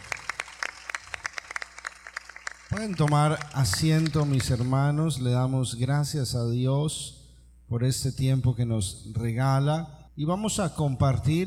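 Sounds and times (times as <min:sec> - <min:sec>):
applause: 0:00.0 - 0:04.9
speech: 0:02.8 - 0:11.4.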